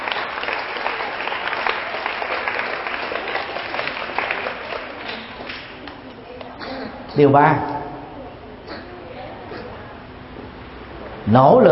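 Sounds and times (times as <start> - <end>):
loud applause: 0.0 - 6.0
speech: 7.2 - 7.7, 11.3 - 11.7.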